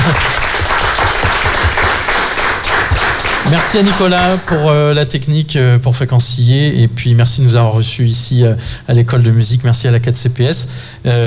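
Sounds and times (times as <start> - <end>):
crowd applauding: 0.0 - 4.7
speech: 0.1 - 0.3, 3.5 - 11.2.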